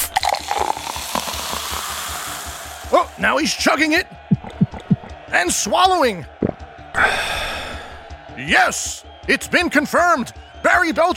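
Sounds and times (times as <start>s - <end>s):
soda can being opened: 0.0s - 2.6s
speech: 3.0s - 4.1s, 5.3s - 6.4s, 7.0s - 7.4s, 8.4s - 11.1s.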